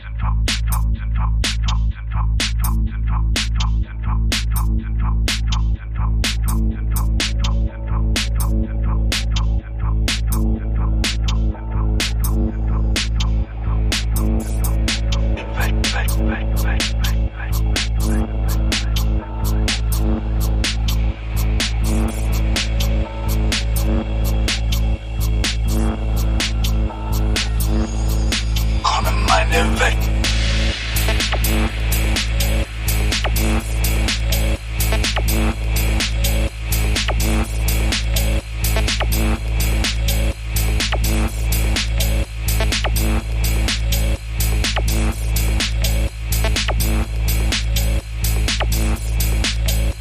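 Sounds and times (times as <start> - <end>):
vocals: 0.0 - 38.2
drums: 0.3 - 49.9.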